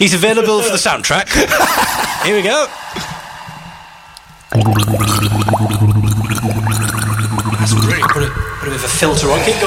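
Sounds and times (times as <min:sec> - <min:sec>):
speech: 0:00.0 - 0:03.1, 0:04.5 - 0:09.6
laughter: 0:01.3 - 0:02.5
person gargling water imitating a mermaid: 0:04.5 - 0:08.6.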